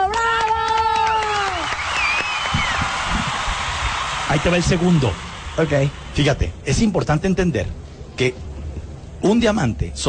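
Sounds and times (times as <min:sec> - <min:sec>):
audience applause: 0:00.0 - 0:06.4
speech: 0:04.3 - 0:08.4, 0:09.2 - 0:10.0.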